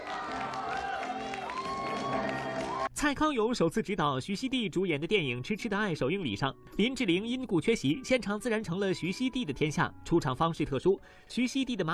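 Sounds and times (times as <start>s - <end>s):
crowd clapping: 0.0s - 2.9s
speech: 3.0s - 11.9s.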